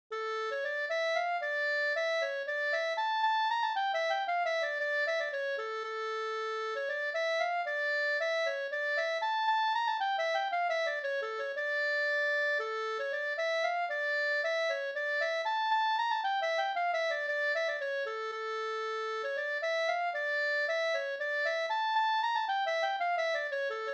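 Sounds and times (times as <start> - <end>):
polska folk music: 0.2 - 23.9.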